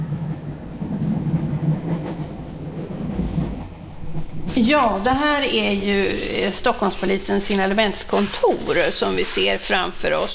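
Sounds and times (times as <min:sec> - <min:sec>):
train riding on rails heard from inside a carriage: 0:00.0 - 0:10.3
speech: 0:04.6 - 0:10.3.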